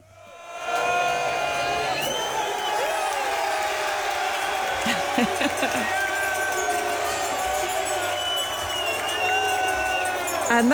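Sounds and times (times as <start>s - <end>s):
packed pub crowd cheering and shouting at full-time whistle: 0.0s - 10.7s
laughter: 1.0s - 10.7s.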